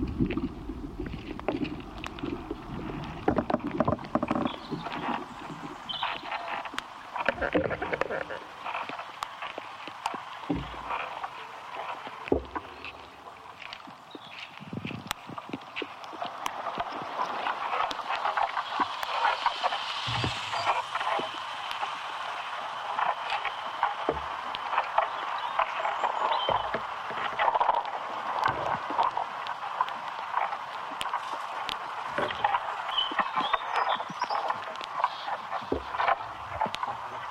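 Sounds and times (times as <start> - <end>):
low rumble: 0.0 - 6.0, 18.7 - 24.5
crackling and rustling from inside an ash tree: 0.0 - 37.3
steady hiss: 4.0 - 37.3.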